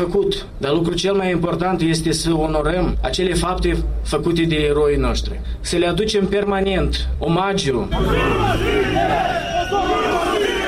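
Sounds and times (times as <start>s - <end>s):
speech: 0.0s - 9.9s
war veterans booing a speaker at a commemoration rally: 7.9s - 10.6s
war veterans shouting: 7.9s - 10.6s.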